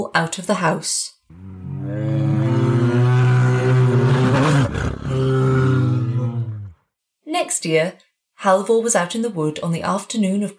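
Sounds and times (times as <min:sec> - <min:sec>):
speech: 0:00.0 - 0:02.3, 0:07.4 - 0:10.5
bear growling: 0:01.3 - 0:06.8.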